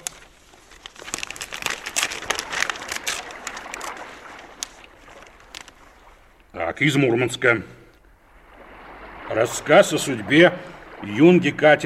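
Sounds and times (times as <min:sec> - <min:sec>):
paper package being opened: 0:00.0 - 0:05.8
speech: 0:06.8 - 0:07.8, 0:09.4 - 0:11.8.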